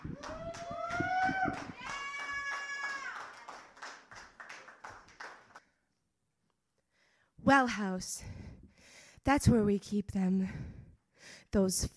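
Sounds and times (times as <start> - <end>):
audience loud whoops: 0.0 - 3.6
poetry slam semi-final audience clapping and cheering: 0.0 - 5.6
speech: 7.5 - 8.3, 9.2 - 10.7, 11.5 - 11.9.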